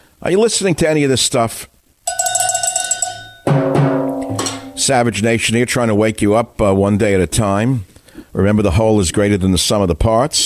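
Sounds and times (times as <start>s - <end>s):
speech: 0.2s - 1.7s, 4.8s - 10.4s
cowbell being struck: 2.1s - 5.0s.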